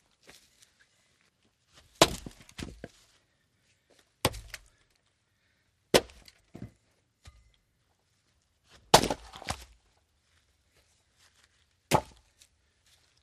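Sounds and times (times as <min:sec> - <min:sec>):
axe splitting logs outdoors: 0:02.0 - 0:02.9, 0:04.2 - 0:04.8, 0:05.9 - 0:07.4, 0:08.8 - 0:09.8, 0:11.9 - 0:12.5.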